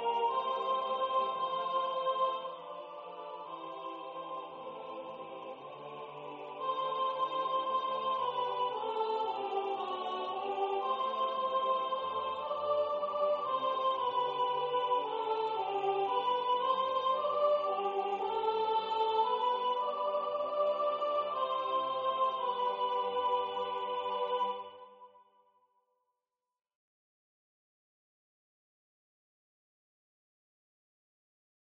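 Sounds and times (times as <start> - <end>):
choir second sopranos singing: 0.0 - 25.1.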